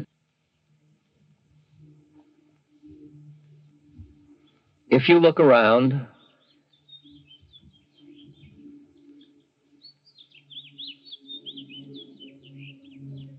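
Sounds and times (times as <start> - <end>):
birds chirping outdoors: 2.8 - 13.3
speech: 4.9 - 6.1.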